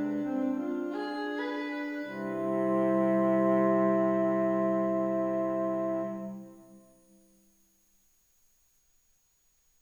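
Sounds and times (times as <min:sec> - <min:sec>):
blues music: 0:00.0 - 0:06.4.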